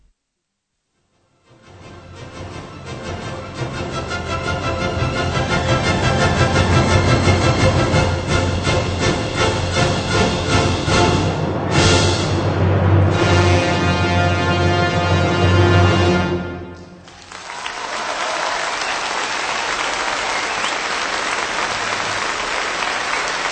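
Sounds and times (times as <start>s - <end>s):
music: 1.0s - 17.1s
audience applause: 17.0s - 23.4s.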